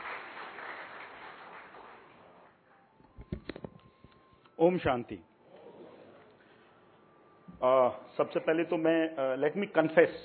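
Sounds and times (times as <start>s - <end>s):
audience applause: 0.0s - 2.6s
speech: 4.6s - 5.3s, 7.6s - 10.2s.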